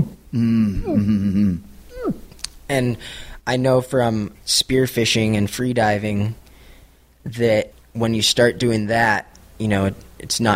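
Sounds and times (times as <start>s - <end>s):
speech: 0.3s - 1.7s, 2.7s - 6.4s, 7.2s - 10.5s
voice imitating breath-hold contractions of an exhausted freediver: 0.3s - 2.3s.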